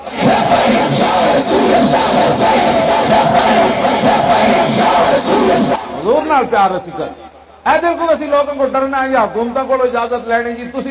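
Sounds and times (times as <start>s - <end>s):
crowd chanting a slogan at a religious gathering: 0.0s - 6.4s
speech: 6.3s - 10.8s.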